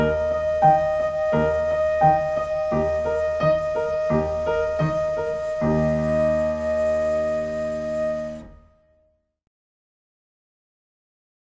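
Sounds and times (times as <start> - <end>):
wedding flute: 0.0 - 9.0
wedding piano: 0.0 - 9.0.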